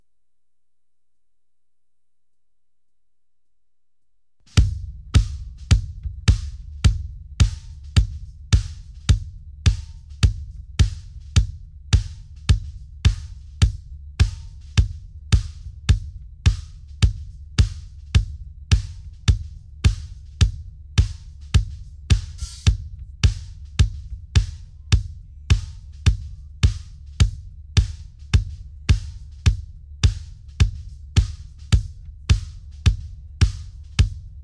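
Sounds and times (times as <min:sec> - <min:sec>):
drums: 0:04.5 - 0:34.4.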